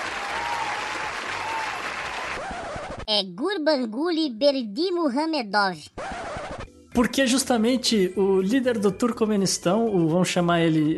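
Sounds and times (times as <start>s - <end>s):
applause: 0.0s - 2.7s
speech: 3.1s - 6.1s, 7.0s - 10.9s.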